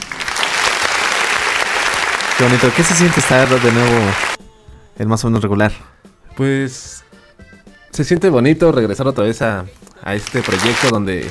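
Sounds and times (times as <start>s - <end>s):
applause from a small group: 0.0s - 4.4s, 10.2s - 11.3s
speech: 2.4s - 4.4s, 5.0s - 7.1s, 7.9s - 11.3s.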